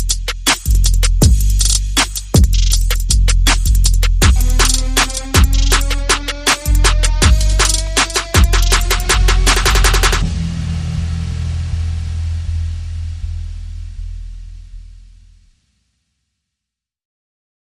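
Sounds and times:
percussion: 0.0s - 13.4s
sound effects: 4.2s - 14.2s.

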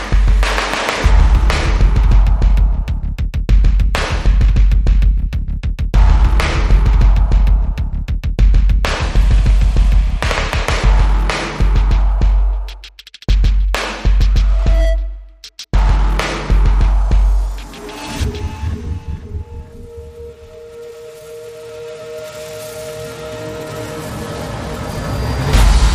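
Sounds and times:
drums: 0.0s - 25.9s
sound effects: 14.3s - 15.2s, 17.1s - 25.9s.

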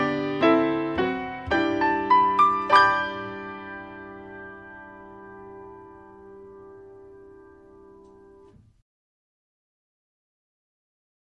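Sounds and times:
traditional Christmas song on solo piano: 0.0s - 8.8s.

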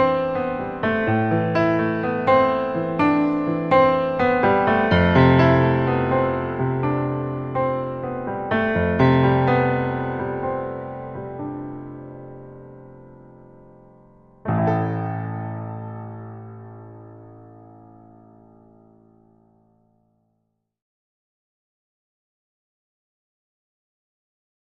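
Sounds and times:
introspective piano etude: 0.0s - 19.6s.

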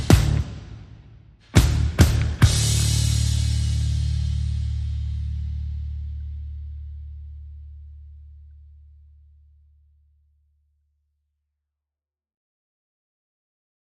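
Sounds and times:
drums: 0.0s - 6.9s
bass: 0.0s - 11.6s.

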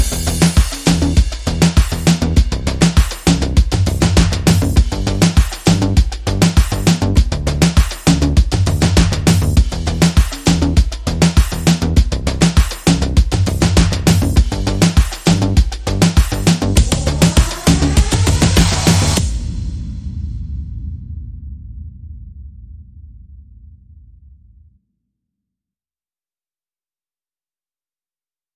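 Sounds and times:
rhythm and bass mix: 0.0s - 20.0s.

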